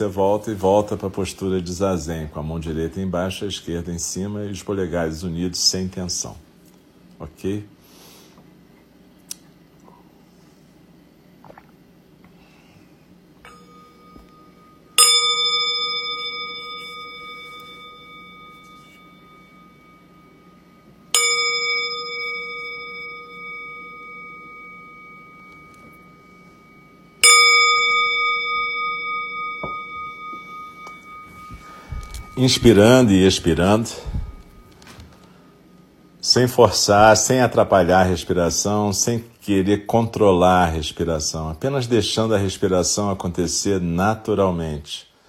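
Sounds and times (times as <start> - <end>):
speech: 0.0 - 6.5, 7.2 - 7.8, 32.4 - 34.1, 36.3 - 45.1
meditation bell struck during zazen: 13.4 - 38.7.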